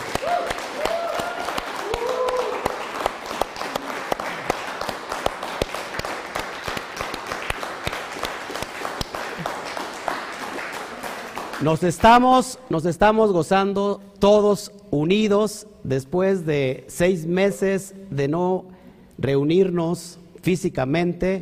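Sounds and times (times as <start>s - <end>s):
voices cheering: 0.0s - 3.0s
audience applause: 0.0s - 11.8s
speech: 11.6s - 21.4s.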